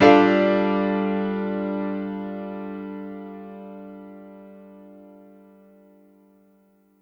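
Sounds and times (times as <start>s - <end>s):
stacked piano chords in D minor: 0.0s - 5.4s.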